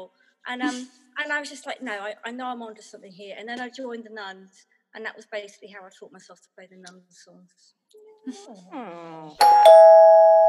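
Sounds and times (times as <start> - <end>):
speech: 0.0 - 10.4
doorbell ringing: 9.4 - 10.4.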